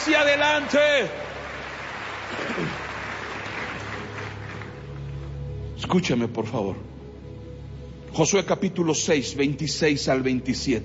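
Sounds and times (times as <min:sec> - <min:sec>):
audience applause: 0:00.0 - 0:05.0
speech: 0:00.1 - 0:01.3, 0:02.3 - 0:02.8, 0:05.9 - 0:06.9, 0:08.1 - 0:10.8.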